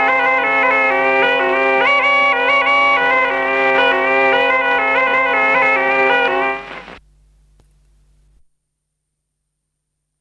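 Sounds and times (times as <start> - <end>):
folk dance music from Kuusalu: 0.0 - 7.0.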